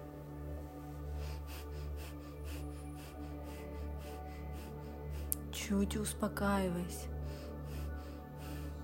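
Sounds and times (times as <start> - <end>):
deep rapid breathing: 0.7 - 5.6, 7.0 - 8.8
speech: 5.7 - 7.1.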